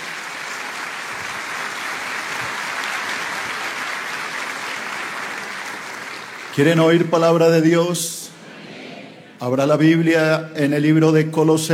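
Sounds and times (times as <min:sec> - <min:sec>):
welcoming applause: 0:00.0 - 0:07.0
speech: 0:06.6 - 0:08.2, 0:09.4 - 0:11.7.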